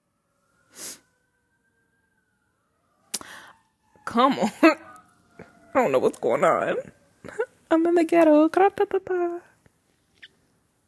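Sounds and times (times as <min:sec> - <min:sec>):
sirens in the street: 0:00.0 - 0:07.7
speech: 0:04.1 - 0:04.8, 0:05.8 - 0:09.5.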